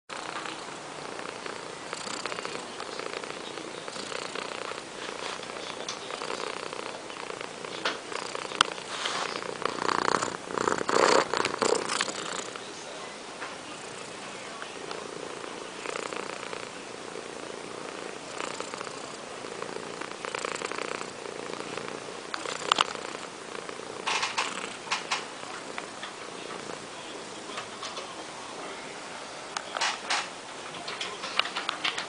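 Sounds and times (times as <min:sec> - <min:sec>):
cat purring: 0:00.1 - 0:32.0.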